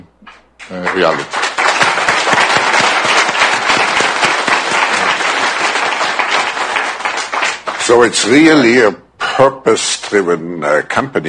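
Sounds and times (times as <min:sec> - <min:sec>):
speech: 0:00.7 - 0:01.4, 0:07.9 - 0:11.2
audience applause: 0:00.8 - 0:08.5.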